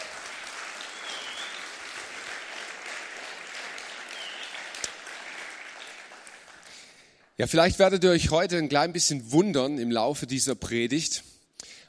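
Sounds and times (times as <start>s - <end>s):
audience applause: 0.0s - 7.2s
speech: 7.4s - 11.3s.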